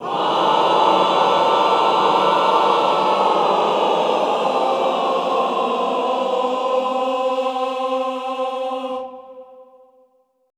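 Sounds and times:
classical choir singing a cluster in unison on C3: 0.0 - 10.1.

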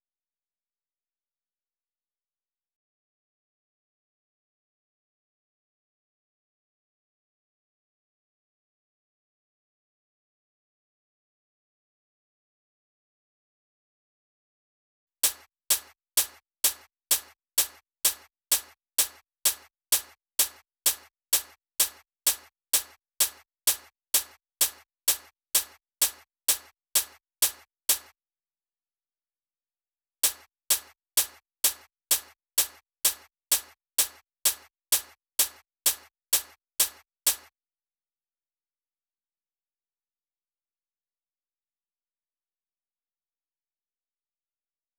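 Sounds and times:
open hi-hat: 15.2 - 28.1, 30.2 - 37.5.

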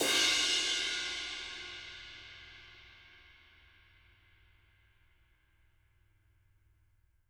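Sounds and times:
dark crash cymbal: 0.0 - 3.8.

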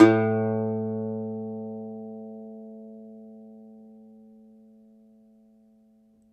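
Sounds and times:
domra plucked strings: 0.0 - 4.9.

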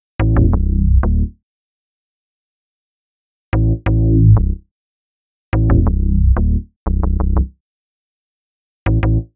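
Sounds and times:
synth bass: 0.2 - 1.3, 3.6 - 4.6, 5.6 - 7.5.

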